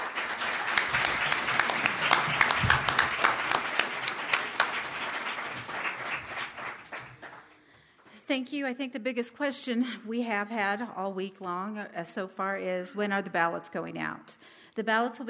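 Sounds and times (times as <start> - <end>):
audience applause for candidates: 0.0 - 7.7
speech: 8.3 - 15.2.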